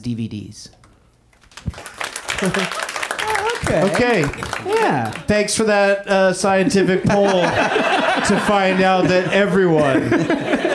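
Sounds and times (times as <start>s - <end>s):
speech: 0.0s - 0.8s, 2.4s - 2.9s, 3.6s - 10.7s
audience applause at a live show: 1.4s - 5.5s
laughter: 2.3s - 5.5s, 6.4s - 10.7s.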